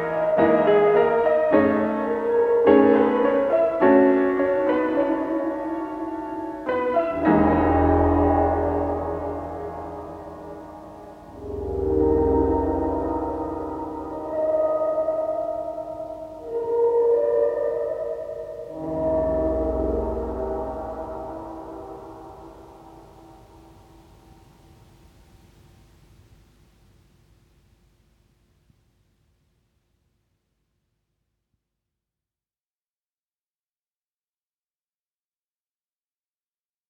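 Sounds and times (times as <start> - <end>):
piano recorded on cassette: 0.0 - 25.8.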